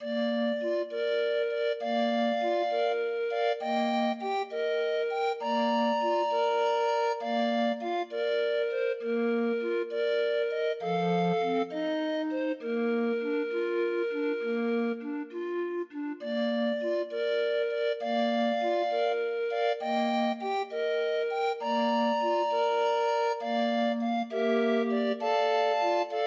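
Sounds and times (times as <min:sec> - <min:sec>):
grind organ playing Christmas carol from a 20 note MIDI file: 0:00.0 - 0:26.2.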